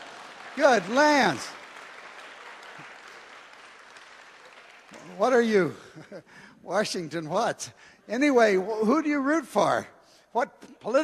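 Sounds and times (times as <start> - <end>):
crowd clapping: 0.0 - 6.0
speech: 0.6 - 1.6, 5.1 - 11.0
laughter: 5.0 - 6.6.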